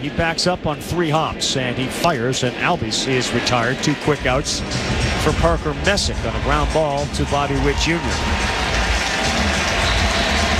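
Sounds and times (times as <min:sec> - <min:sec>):
speech: 0:00.0 - 0:08.6
crowd roaring: 0:06.5 - 0:10.5.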